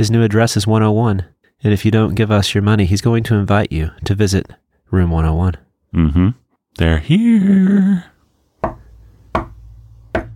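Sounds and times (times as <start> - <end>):
speech: 0.0 - 8.8
knocking on a door: 8.6 - 10.3.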